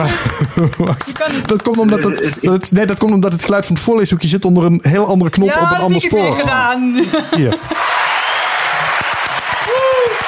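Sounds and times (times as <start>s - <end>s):
laughter: 0.0s - 2.5s, 7.0s - 8.0s
speech: 0.0s - 8.0s
applause sound effect: 7.8s - 10.2s.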